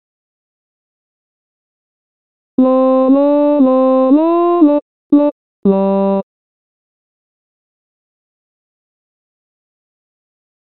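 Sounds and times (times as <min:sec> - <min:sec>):
tenor singing: 0:02.6 - 0:06.2.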